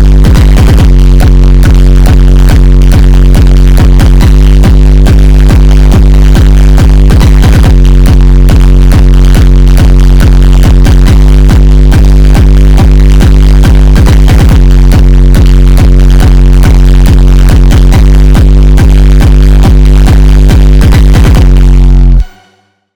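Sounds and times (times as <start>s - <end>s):
deep bass: 0.0s - 22.3s.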